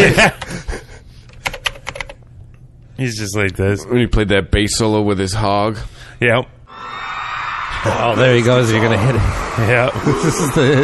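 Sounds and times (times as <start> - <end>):
speech: 0.0 - 0.4, 3.0 - 7.0, 7.8 - 10.8
laughter: 0.0 - 1.0, 7.7 - 10.8
fast typing on a keyboard: 1.4 - 2.2.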